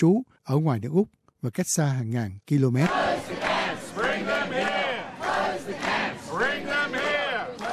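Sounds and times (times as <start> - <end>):
speech: 0.0 - 3.3
protest march crowd chanting: 2.8 - 7.7.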